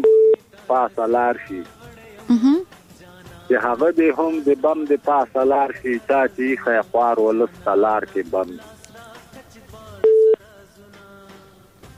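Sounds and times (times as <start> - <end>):
telephone busy tone after a caller's line was cut: 0.0 - 0.4, 10.0 - 10.4
speech: 0.7 - 2.8, 3.5 - 8.8.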